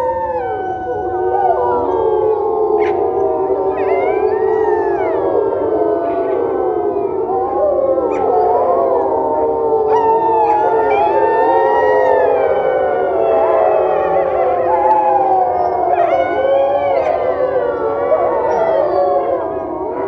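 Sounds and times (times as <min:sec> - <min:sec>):
wolves howling in chorus: 0:00.0 - 0:20.0.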